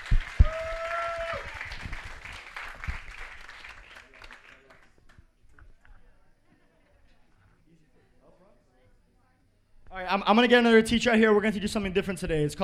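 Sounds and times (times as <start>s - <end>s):
audience applause: 0.0s - 5.0s
speech: 10.1s - 12.6s.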